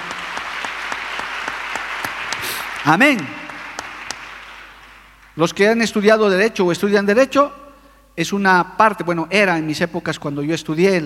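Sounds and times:
audience applause: 0:00.0 - 0:05.4
speech: 0:02.8 - 0:03.4, 0:05.4 - 0:07.6, 0:08.2 - 0:11.0.

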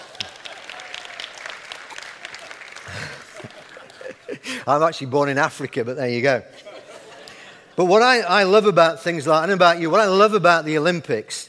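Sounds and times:
crowd applause: 0:00.0 - 0:04.6
laughter: 0:01.9 - 0:04.8, 0:06.5 - 0:07.9
speech: 0:04.5 - 0:06.6, 0:07.8 - 0:11.4.

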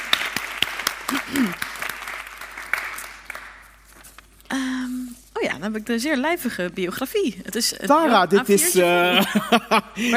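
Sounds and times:
audience applause: 0:00.0 - 0:03.6
speech: 0:05.6 - 0:10.1
laughter: 0:08.8 - 0:10.1.

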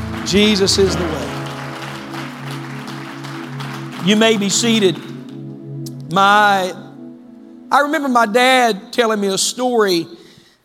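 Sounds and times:
crowd clapping: 0:00.0 - 0:05.4
low organ-like tones: 0:00.0 - 0:09.8
speech: 0:00.3 - 0:01.3, 0:04.0 - 0:05.1, 0:06.1 - 0:06.8, 0:07.7 - 0:10.2.

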